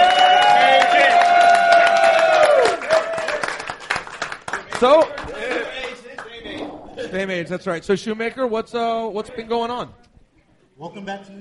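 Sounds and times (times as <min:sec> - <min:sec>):
live audience at a New York show cheering and applauding: 0:00.0 - 0:05.7
speech: 0:04.8 - 0:05.3, 0:07.1 - 0:10.0, 0:10.8 - 0:11.3.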